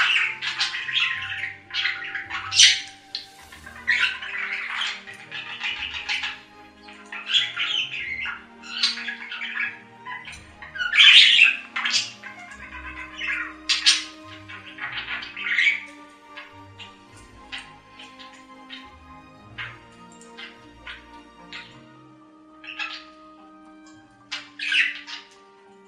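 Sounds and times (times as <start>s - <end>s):
budgerigar chatter: 0.0s - 25.8s.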